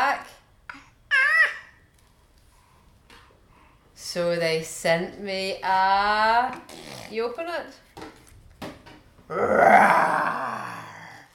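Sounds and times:
speech: 4.1s - 8.1s, 9.3s - 10.7s
person imitating a lion's growl: 9.3s - 11.3s.

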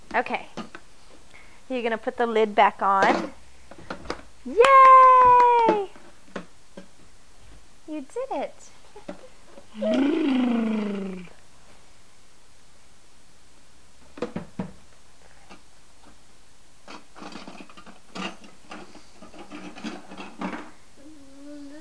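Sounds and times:
speech: 0.1s - 0.6s, 1.7s - 3.4s, 4.4s - 5.8s, 7.9s - 9.2s, 9.8s - 11.3s
child imitating a car engine vroom: 9.8s - 11.3s.

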